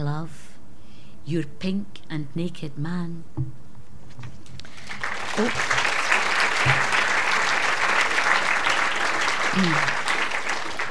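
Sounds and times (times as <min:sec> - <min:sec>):
speech: 0:00.2 - 0:00.4, 0:01.2 - 0:03.6, 0:04.2 - 0:04.4, 0:05.4 - 0:05.8, 0:09.6 - 0:10.0
audience clapping after a poem: 0:04.6 - 0:10.8.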